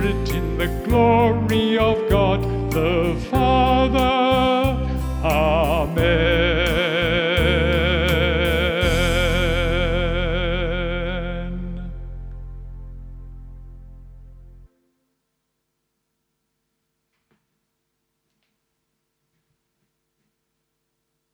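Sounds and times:
vocal music: 0.0 - 13.5.

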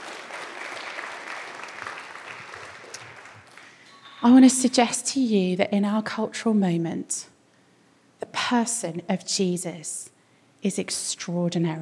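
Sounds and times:
audience applause: 0.0 - 3.8
speech: 4.2 - 7.3, 8.5 - 11.7.

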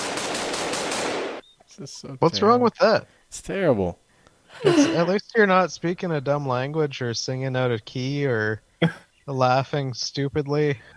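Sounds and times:
rapid-fire gunfire sound effect: 0.0 - 1.4
speech: 1.8 - 10.9
laughter: 4.5 - 5.2.

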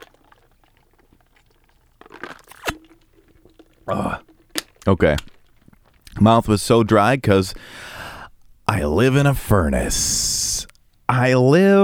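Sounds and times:
person gulping a drink: 0.0 - 6.2
speech: 3.9 - 4.2, 4.9 - 5.3, 6.2 - 7.9, 8.7 - 10.4, 11.2 - 11.8.

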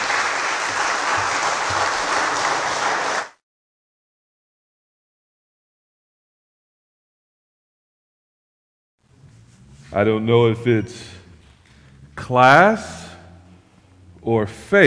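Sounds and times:
church congregation applauding a guest preacher: 0.0 - 3.4
speech: 10.0 - 11.2, 12.2 - 13.0, 14.2 - 14.8.

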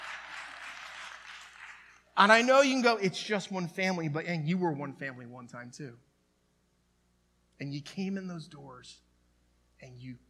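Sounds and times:
audience clapping: 0.0 - 2.1
speech: 2.2 - 6.1, 7.6 - 9.1, 9.8 - 10.2.

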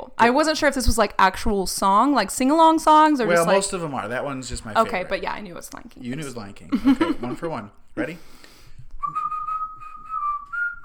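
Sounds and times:
speech: 0.2 - 8.5
laughter: 6.7 - 7.7
person whistling a song melody: 9.0 - 10.8.

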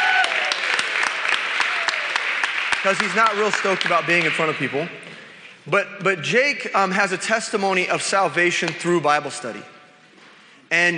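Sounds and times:
audience applause: 0.0 - 4.8
speech: 2.8 - 9.8, 10.7 - 10.9.

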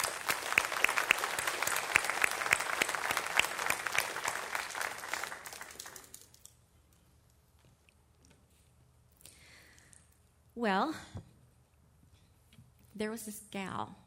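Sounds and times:
audience applause: 0.0 - 6.4
speech: 10.6 - 11.2, 13.0 - 14.0.

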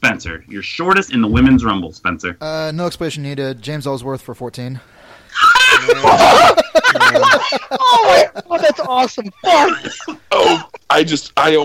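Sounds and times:
speech: 0.0 - 11.6
laughter: 5.4 - 10.9
person coughing and sputtering after almost choking: 9.6 - 10.9.

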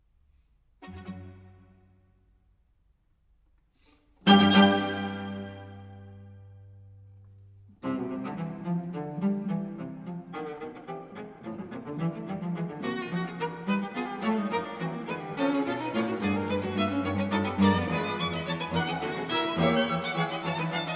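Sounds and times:
string quartet playing vivace: 4.2 - 6.9, 7.8 - 20.9.

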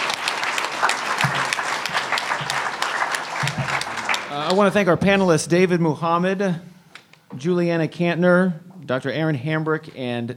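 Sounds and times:
crowd applauding: 0.0 - 5.3
speech: 4.4 - 6.7, 7.3 - 10.3.

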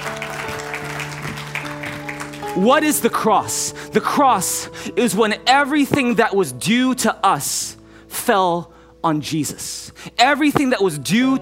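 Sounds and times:
audience clapping: 0.0 - 3.1
speech: 2.6 - 11.4.

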